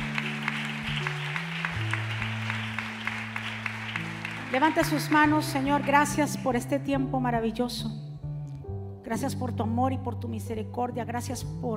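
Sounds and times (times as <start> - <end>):
audience applause: 0.0 - 6.2
speech: 4.5 - 8.0, 9.1 - 11.7.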